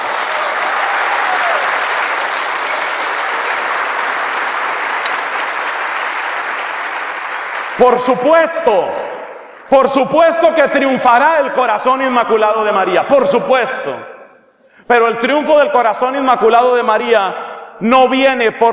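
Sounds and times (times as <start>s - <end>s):
audience applause: 0.0s - 8.1s
speech: 7.8s - 9.1s, 9.7s - 14.1s, 14.9s - 18.7s.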